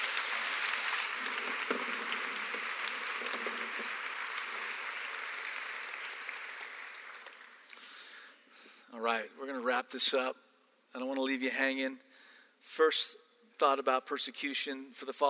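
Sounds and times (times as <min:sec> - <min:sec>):
people clapping: 0:00.0 - 0:08.2
speech: 0:09.0 - 0:15.2.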